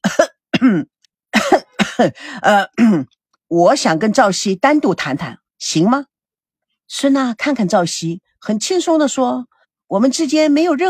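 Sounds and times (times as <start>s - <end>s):
fake coughing: 0.0s - 3.2s
speech: 0.6s - 0.9s, 2.0s - 6.1s, 6.9s - 10.8s.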